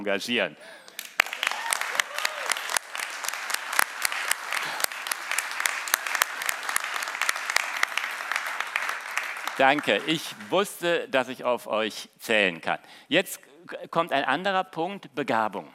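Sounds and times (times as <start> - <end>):
speech: 0.0 - 1.1, 9.6 - 15.7
thunderous audience applause: 1.0 - 10.5.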